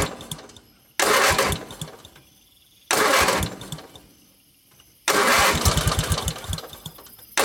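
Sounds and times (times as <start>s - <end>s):
car engine cranking but failing to start: 0.0s - 2.3s, 2.9s - 4.0s, 5.1s - 7.4s.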